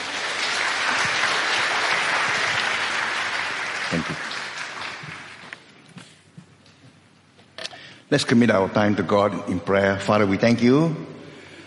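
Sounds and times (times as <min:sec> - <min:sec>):
church audience clapping welcoming a bishop to a confirmation service: 0:00.0 - 0:05.7
speech: 0:03.9 - 0:04.2, 0:08.1 - 0:11.1.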